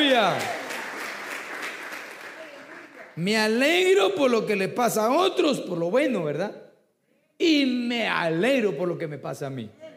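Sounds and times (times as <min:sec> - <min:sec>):
audience clapping hands loudly: 0:00.0 - 0:03.3
speech: 0:00.2 - 0:00.6, 0:03.2 - 0:06.6, 0:07.4 - 0:09.8.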